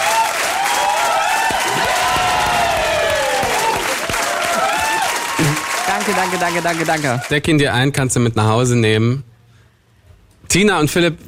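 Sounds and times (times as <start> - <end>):
applause: 0.0 - 7.4
speech: 6.1 - 9.3, 10.5 - 11.2.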